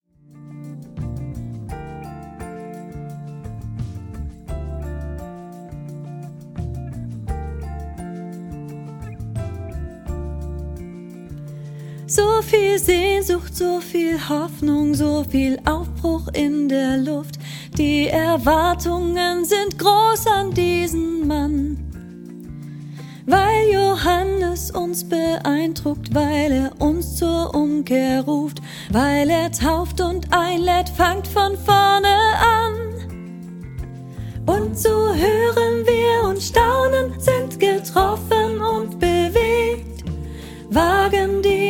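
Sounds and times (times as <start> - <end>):
soprano solo singing: 12.1 - 22.0, 23.2 - 33.2, 34.4 - 41.6.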